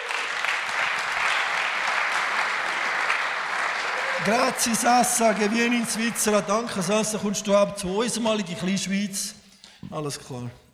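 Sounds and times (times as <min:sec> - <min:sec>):
audience applause: 0:00.0 - 0:07.8
speech: 0:04.2 - 0:10.6.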